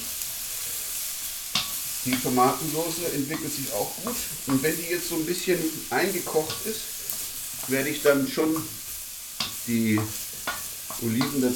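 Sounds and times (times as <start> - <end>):
aubergines sizzling on hot plates: 0.0 - 11.5
speech: 2.0 - 7.0, 7.7 - 8.8, 9.6 - 10.2, 11.0 - 11.5.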